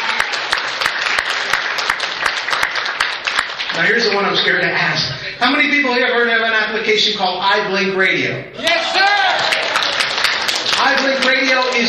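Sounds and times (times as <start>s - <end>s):
audience applause: 0.0s - 4.3s, 8.6s - 11.8s
speech: 3.8s - 9.1s.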